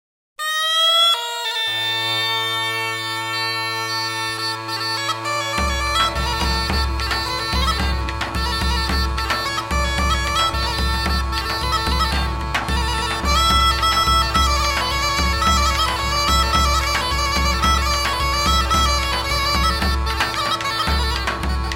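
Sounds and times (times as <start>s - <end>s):
Greek troiro folk dance music: 0.4s - 21.7s.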